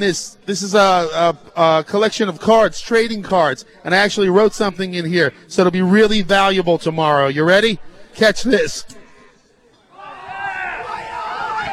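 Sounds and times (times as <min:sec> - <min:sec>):
speech: 0:00.0 - 0:09.0
crowd clamoring: 0:09.9 - 0:11.7.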